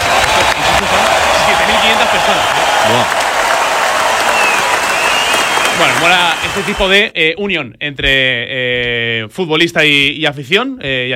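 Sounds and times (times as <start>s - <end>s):
stadium crowd ovation: 0.0s - 7.0s
speech: 6.0s - 11.1s.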